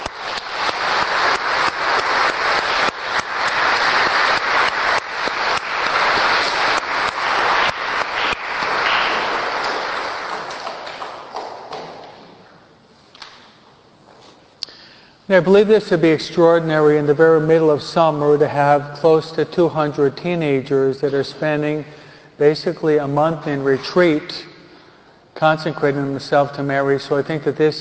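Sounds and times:
audience applause: 0.0s - 12.1s
speech: 15.3s - 24.5s, 25.4s - 27.7s.

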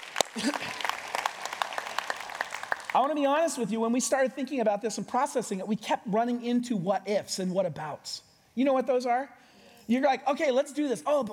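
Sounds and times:
church congregation clapping: 0.0s - 3.2s
speech: 0.4s - 0.8s, 3.0s - 11.3s.

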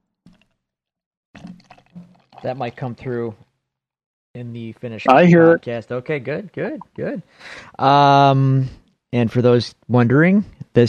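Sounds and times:
beer pouring into a glass: 1.4s - 3.1s
speech: 2.4s - 3.5s, 4.4s - 10.8s.

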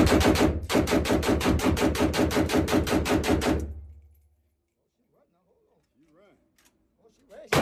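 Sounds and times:
rapid gunfire from a firearm being test-fired: 0.0s - 3.8s.

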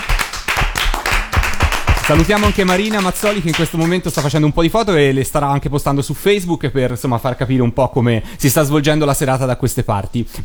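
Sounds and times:
audience clapping: 0.0s - 4.5s
speech: 2.1s - 10.4s.

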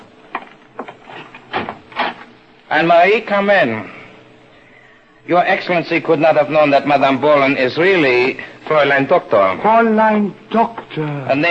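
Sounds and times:
side door opening: 0.0s - 2.3s
speech: 2.7s - 4.0s, 5.2s - 11.4s.

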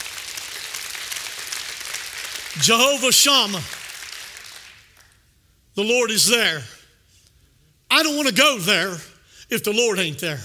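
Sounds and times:
audience clapping hands in praise: 0.0s - 5.3s
speech: 2.6s - 3.8s, 5.8s - 6.8s, 8.0s - 10.4s.

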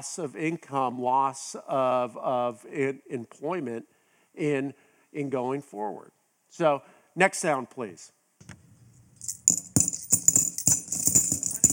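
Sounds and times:
speech: 0.0s - 8.5s
coins jingling: 9.0s - 11.7s.

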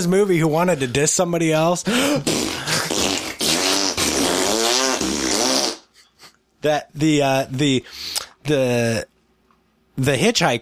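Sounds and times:
speech: 0.0s - 3.1s, 6.6s - 9.1s, 10.0s - 10.6s
person blowing a raspberry: 1.9s - 5.9s.

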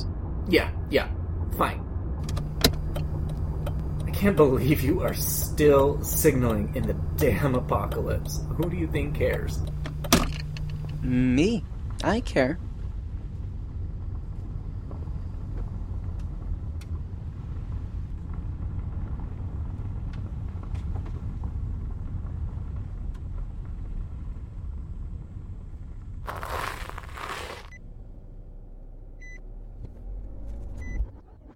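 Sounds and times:
parked car engine running: 0.0s - 12.0s, 12.7s - 31.5s
speech: 0.5s - 2.4s, 4.2s - 9.8s, 11.0s - 12.7s.

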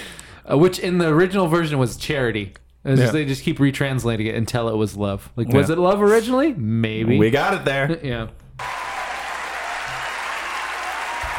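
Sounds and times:
speech: 0.5s - 8.7s
audience applause: 8.6s - 11.3s.

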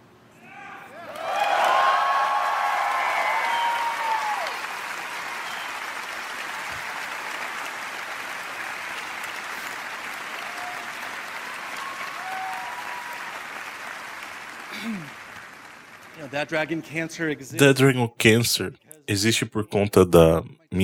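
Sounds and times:
faint whistles and cheers: 0.4s - 7.9s, 10.2s - 13.9s
audience applause: 1.1s - 17.8s
speech: 16.3s - 20.8s.

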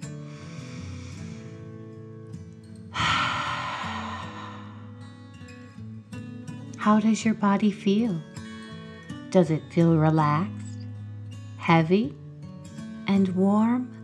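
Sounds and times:
slow deep breath in through the nose and out through the mouth: 0.1s - 1.9s, 2.9s - 5.4s
speech: 6.8s - 8.3s, 9.3s - 10.6s, 11.7s - 12.2s, 13.1s - 14.0s.

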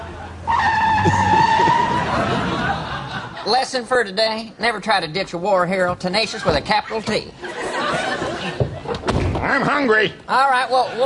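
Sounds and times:
low car engine rumble: 0.0s - 3.5s
laughter: 0.0s - 3.8s, 6.3s - 9.3s, 10.6s - 11.0s
car tires squealing as brakes lock: 0.4s - 3.2s
speech: 1.0s - 1.3s, 3.5s - 7.6s, 9.5s - 11.0s.

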